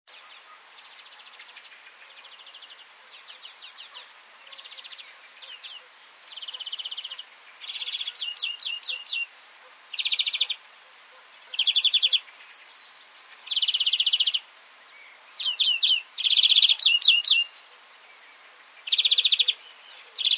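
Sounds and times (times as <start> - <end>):
European greenfinch Chloris chloris singing wheezy buzzes and rattling trills: 0.1 - 9.3, 9.9 - 10.6, 11.4 - 20.3.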